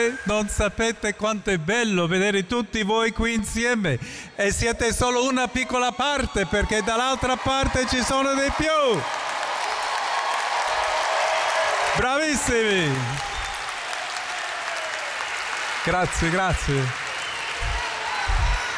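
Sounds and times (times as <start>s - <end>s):
speech: 0.0s - 9.3s, 12.0s - 13.3s, 15.8s - 17.0s
crowd applause: 6.8s - 18.7s.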